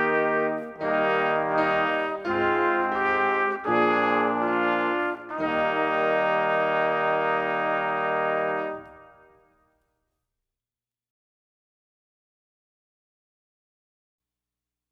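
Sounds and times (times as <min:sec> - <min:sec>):
music: 0:00.0 - 0:10.2.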